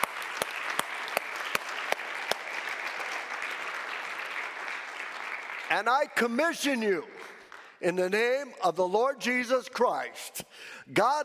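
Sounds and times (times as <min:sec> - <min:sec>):
audience applause: 0:00.0 - 0:06.1
speech: 0:05.7 - 0:11.2.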